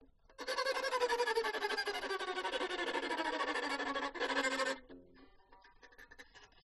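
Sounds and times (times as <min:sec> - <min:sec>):
violin tremolo recorded with a condenser microphone: 0:00.4 - 0:04.9.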